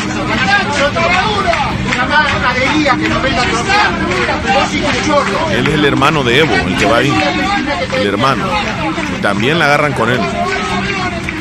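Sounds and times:
noisy crowd commotion: 0:00.0 - 0:11.4
speech: 0:02.8 - 0:10.6.

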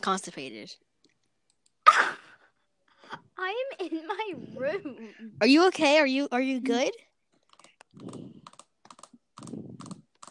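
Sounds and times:
speech: 0:00.0 - 0:00.9, 0:03.4 - 0:07.1
typing on computer keyboard: 0:07.4 - 0:10.2.

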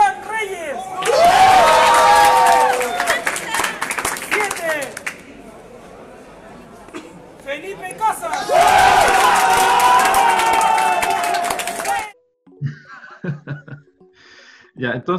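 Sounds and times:
tournament crowd cheering with whoops and shouts: 0:01.0 - 0:03.6, 0:08.4 - 0:12.2
tournament crowd clapping: 0:01.0 - 0:05.4, 0:08.2 - 0:12.2
quiet chatter: 0:05.0 - 0:08.4
laughter: 0:12.6 - 0:13.9
speech: 0:15.0 - 0:15.1.

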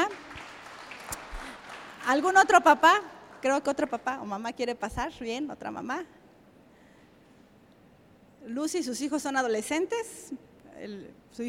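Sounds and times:
audience applause: 0:00.0 - 0:03.5
speech: 0:02.1 - 0:06.2, 0:08.4 - 0:11.4.

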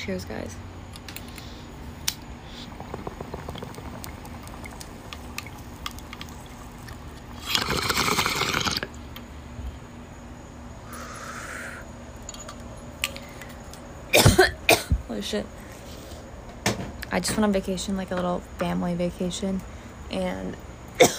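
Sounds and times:
speech: 0:00.0 - 0:00.7, 0:15.2 - 0:15.6, 0:17.2 - 0:21.1
airy hiss: 0:01.2 - 0:05.3, 0:10.8 - 0:12.0
bong water gurgling and bubbling: 0:02.3 - 0:09.0
person coughing harshly: 0:14.1 - 0:15.0, 0:21.0 - 0:21.1.

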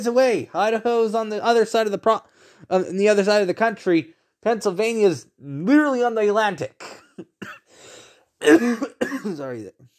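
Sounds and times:
speech: 0:00.0 - 0:07.6, 0:08.4 - 0:09.9
coughing: 0:06.7 - 0:09.8.

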